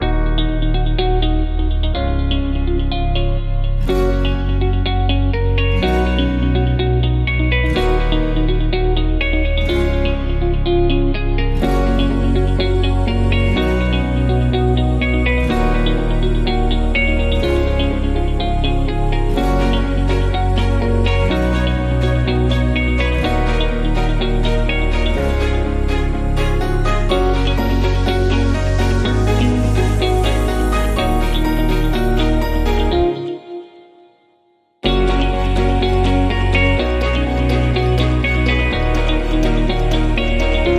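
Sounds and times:
music without drums: 0.0 - 40.7.

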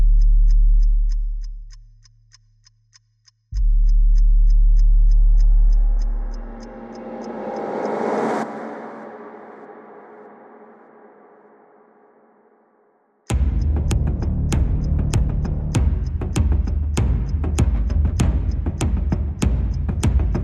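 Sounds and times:
bass: 0.0 - 7.1, 13.3 - 20.4
drums: 13.3 - 20.4.

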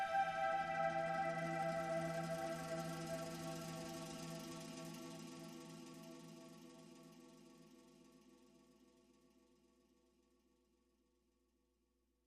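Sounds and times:
drones: 0.0 - 6.5.

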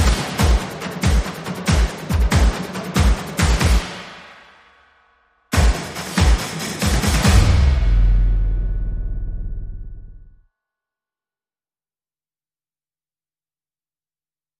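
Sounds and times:
small percussion: 0.0 - 8.5.

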